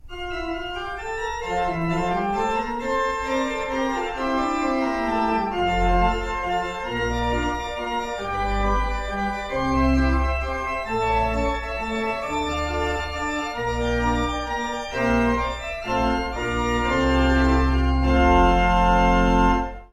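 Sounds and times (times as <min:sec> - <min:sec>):
prelude piece: 0:00.0 - 0:19.9.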